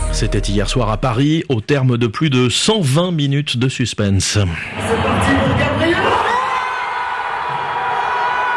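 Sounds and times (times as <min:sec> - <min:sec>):
speech: 0:00.2 - 0:05.6
PSG supporters erupting in cheers at the Parc des Princes: 0:04.8 - 0:08.5.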